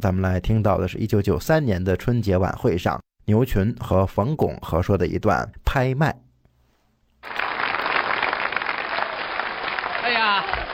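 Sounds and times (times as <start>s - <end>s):
speech: 0.0s - 6.2s
audience applause: 7.2s - 10.7s.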